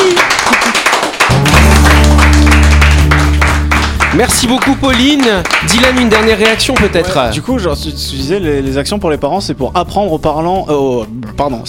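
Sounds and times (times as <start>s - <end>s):
audience applause: 0.0s - 7.2s
speech: 4.2s - 11.6s.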